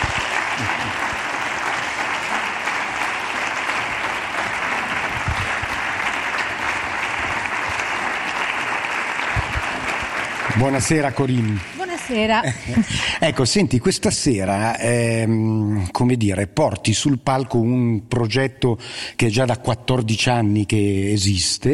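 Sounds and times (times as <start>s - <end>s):
audience clapping: 0.0s - 12.9s
speech: 0.6s - 1.0s, 10.6s - 21.7s.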